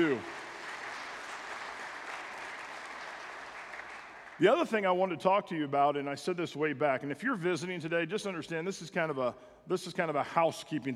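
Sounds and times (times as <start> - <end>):
speech: 0.0 - 0.4, 4.4 - 10.9
audience applause: 0.0 - 4.5.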